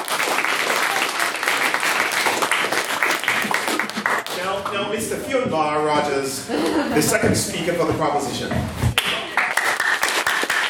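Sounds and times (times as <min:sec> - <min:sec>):
audience applause: 0:00.0 - 0:04.4, 0:09.0 - 0:10.6
speech: 0:05.0 - 0:08.9
laughter: 0:06.4 - 0:08.0.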